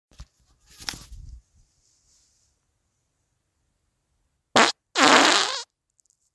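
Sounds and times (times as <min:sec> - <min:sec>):
fart: 0:04.6 - 0:05.7.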